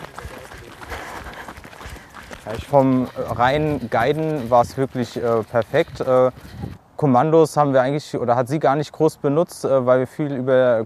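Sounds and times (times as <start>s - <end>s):
footsteps on a muddy outdoor path passing beneath a bridge: 0.0s - 6.8s
speech: 2.5s - 10.8s.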